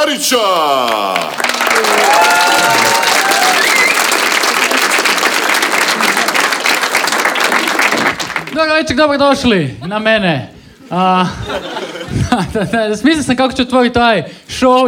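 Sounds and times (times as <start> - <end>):
speech: 0.0 - 3.6, 8.6 - 14.8
comedy-club audience applause as a comedian walks on stage: 0.5 - 8.6
comedy-club audience whoops and cheers: 0.7 - 6.6
laughter: 10.8 - 13.0.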